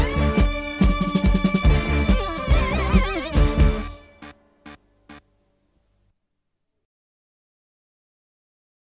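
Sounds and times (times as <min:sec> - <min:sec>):
title theme music: 0:00.0 - 0:05.3.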